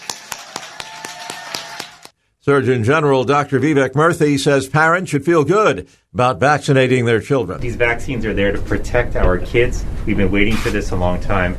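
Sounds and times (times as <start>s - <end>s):
crisp claps: 0.0s - 2.2s
speech: 2.4s - 11.5s
faint constant hum: 7.6s - 11.5s.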